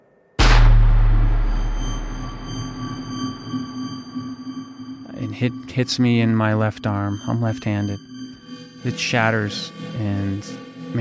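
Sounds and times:
gunshot: 0:00.4 - 0:03.4
faint high ringing tone: 0:00.4 - 0:10.5
speech: 0:05.4 - 0:08.1, 0:08.8 - 0:10.9.

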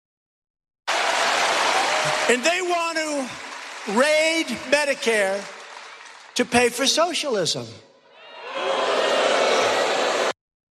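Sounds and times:
crowd booing: 0:00.9 - 0:02.9, 0:08.1 - 0:10.4
speech: 0:02.0 - 0:05.6, 0:06.4 - 0:07.8.

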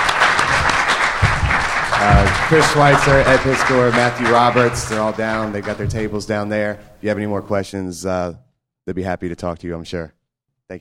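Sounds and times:
audience applause: 0:00.0 - 0:06.8
speech: 0:02.5 - 0:10.7.

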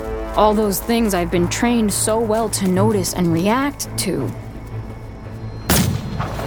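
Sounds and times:
speech: 0:00.4 - 0:04.4
gunshot: 0:05.7 - 0:06.4.

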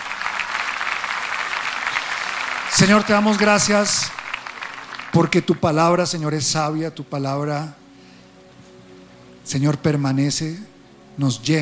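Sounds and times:
audience applause: 0:00.0 - 0:05.7
speech: 0:02.7 - 0:04.2, 0:05.1 - 0:07.8, 0:09.5 - 0:11.6.

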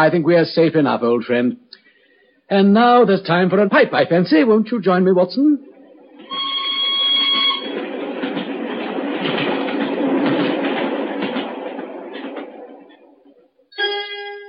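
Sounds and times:
speech: 0:00.0 - 0:01.6, 0:02.5 - 0:05.7
single-carriage train thundering past: 0:05.6 - 0:13.4.

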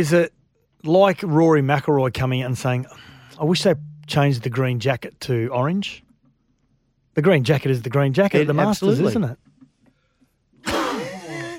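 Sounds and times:
speech: 0:00.0 - 0:06.0, 0:07.2 - 0:09.4
massive sneeze: 0:10.6 - 0:11.5.

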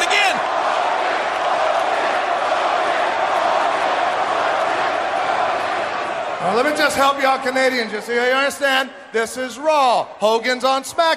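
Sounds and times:
arena crowd booing: 0:00.0 - 0:08.2
speech: 0:06.6 - 0:11.1.

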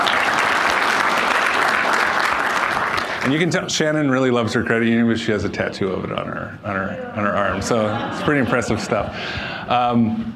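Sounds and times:
audience applause: 0:00.0 - 0:03.5
speech: 0:03.3 - 0:10.3
laughter: 0:06.9 - 0:09.4.

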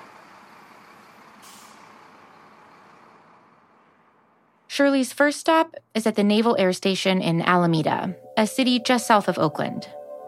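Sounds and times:
truck air brakes hissing: 0:00.0 - 0:03.2
truck engine rumble driving out of a gate: 0:00.0 - 0:04.9
speech: 0:04.8 - 0:10.0.

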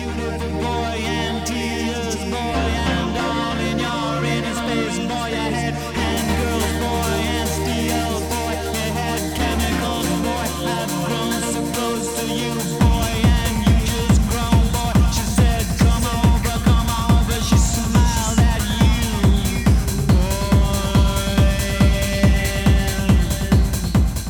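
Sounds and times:
shimmering sustained trance synth keyboard chords: 0:00.0 - 0:24.2
pounding steady kick-drum beat in 1990s electronic trance track: 0:06.0 - 0:24.2.

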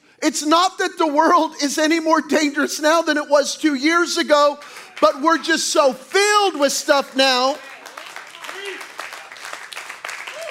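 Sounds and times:
speech: 0:00.2 - 0:07.7
audience clapping: 0:04.5 - 0:05.5, 0:06.4 - 0:10.4.

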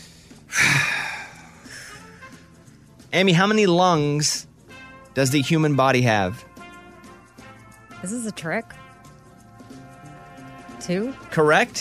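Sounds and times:
deep breath taken by a contestant in a trivia game: 0:00.0 - 0:02.6
speech: 0:03.1 - 0:04.5, 0:05.2 - 0:06.5, 0:08.0 - 0:08.8, 0:10.9 - 0:11.8.

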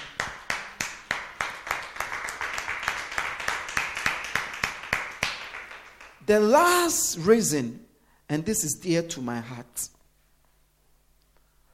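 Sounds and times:
audience clapping hands: 0:00.0 - 0:06.5
speech: 0:06.3 - 0:10.0.

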